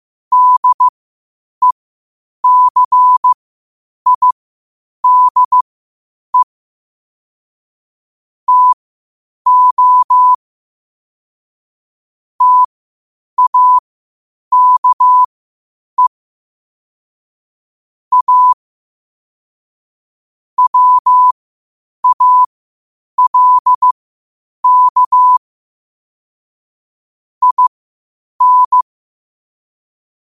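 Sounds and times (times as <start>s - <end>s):
morse code at 5 wpm: 0.3s - 0.9s, 2.4s - 3.4s, 4.1s - 4.4s, 5.0s - 5.6s, 8.5s - 8.8s, 9.5s - 10.4s, 12.4s - 12.7s, 13.4s - 13.8s, 14.5s - 15.3s, 18.1s - 18.6s, 20.6s - 21.4s, 22.0s - 22.5s, 23.2s - 24.0s, 24.6s - 25.4s, 27.4s - 27.7s, 28.4s - 28.8s.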